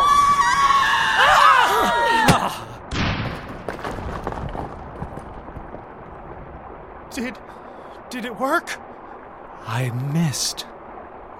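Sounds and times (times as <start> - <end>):
person screaming: 0.0 - 2.7
speech: 8.2 - 8.9, 9.7 - 10.7.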